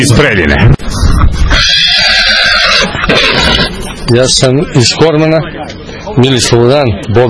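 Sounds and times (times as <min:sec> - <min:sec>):
speech: 0:00.0 - 0:01.8, 0:04.1 - 0:07.2
horse from a stud farm in Preljina Serbia neighing: 0:01.5 - 0:03.8.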